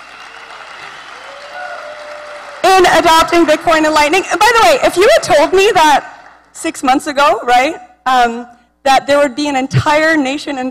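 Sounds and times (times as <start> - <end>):
audience applauding at the LaBitconf 2021 Bitcoin conference: 0.0 - 6.5
speech: 2.8 - 10.7.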